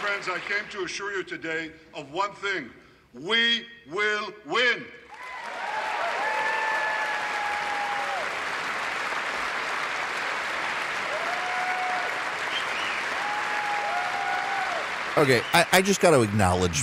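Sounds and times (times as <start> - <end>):
audience applause: 0.0 - 0.9, 5.1 - 16.8
speech: 0.2 - 5.0, 15.2 - 16.8
audience cheering: 5.1 - 8.8, 10.8 - 16.8.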